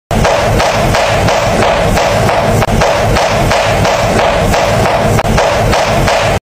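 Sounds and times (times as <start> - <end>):
strange bouncing sounds: 0.1 - 6.3.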